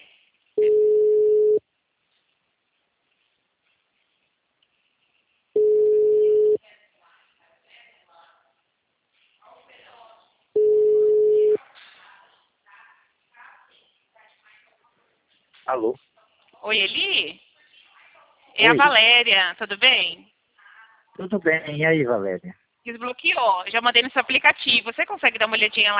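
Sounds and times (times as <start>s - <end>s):
outgoing telephone ringback beeps: 0.6s - 1.6s, 5.6s - 6.6s, 10.6s - 11.6s
people talking quietly: 5.6s - 25.9s
speech: 15.7s - 17.4s, 18.6s - 20.3s, 21.2s - 25.9s.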